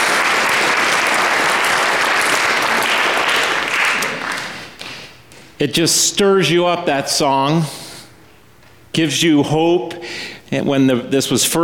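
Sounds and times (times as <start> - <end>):
audience clapping after a song from a musical: 0.0 - 5.6
speech: 5.6 - 7.8, 8.9 - 11.6.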